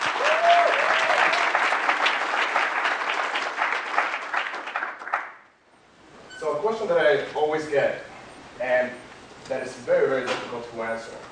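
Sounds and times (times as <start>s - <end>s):
conference audience applause at the IA Summit welcoming a speaker: 0.0s - 5.5s
speech: 6.9s - 11.2s.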